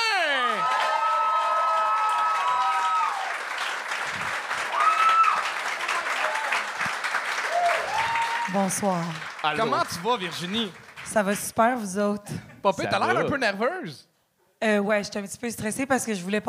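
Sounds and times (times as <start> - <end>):
cheers and whoops: 0.0 - 3.5, 4.6 - 8.8
crowd applause: 0.0 - 11.6
speech: 8.5 - 16.4.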